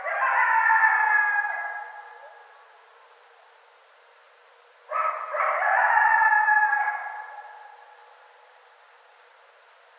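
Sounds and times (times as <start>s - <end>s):
coyotes howling: 0.0s - 2.6s, 4.9s - 8.1s.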